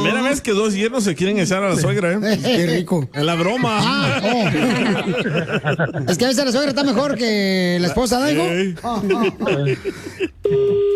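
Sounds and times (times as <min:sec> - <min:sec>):
speech: 0:00.4 - 0:10.9
laughter: 0:02.3 - 0:07.4, 0:08.7 - 0:10.9
telephone tone from a caller's phone on the line: 0:10.4 - 0:10.9.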